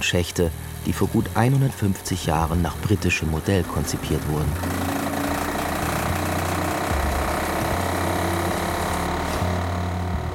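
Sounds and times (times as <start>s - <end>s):
sewer robot vehicle's water pump running: 0.0s - 10.3s
speech: 0.1s - 5.0s
faint rattling chatter of water pump: 2.2s - 10.3s.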